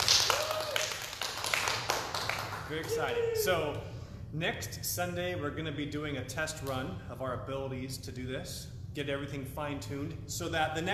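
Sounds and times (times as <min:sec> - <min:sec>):
people clapping: 0:00.0 - 0:03.8
speech: 0:02.7 - 0:10.9.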